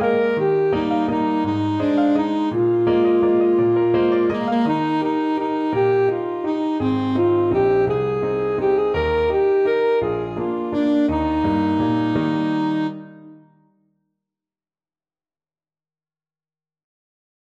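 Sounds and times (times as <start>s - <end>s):
alto saxophone: 0.0s - 13.6s.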